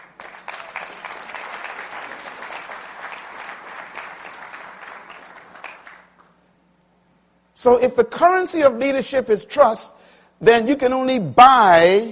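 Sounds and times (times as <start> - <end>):
audience applause: 0.0 - 6.3
speech: 7.6 - 12.1.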